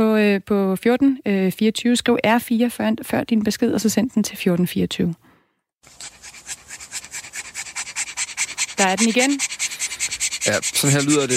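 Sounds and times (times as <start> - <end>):
speech: 0.0 - 5.2, 8.8 - 9.6, 10.4 - 11.3
French bulldog panting after a short walk: 5.9 - 11.3.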